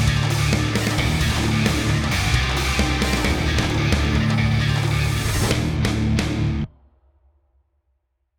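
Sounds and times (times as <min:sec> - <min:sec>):
backing track: 0:00.0 - 0:06.7.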